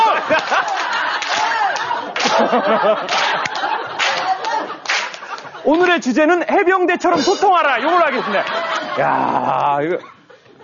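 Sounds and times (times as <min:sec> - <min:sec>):
Marine Corps style group clapping: 0:00.0 - 0:06.0
laughter: 0:00.0 - 0:10.6
speech: 0:02.5 - 0:03.2, 0:05.6 - 0:10.2.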